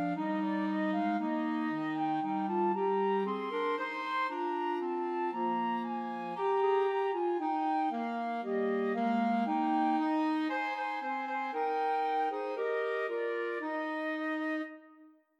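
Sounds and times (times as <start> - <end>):
alto saxophone in a trio: 0.0 - 15.1
clarinet in a trio: 0.0 - 15.3
flute in a trio: 0.0 - 15.3.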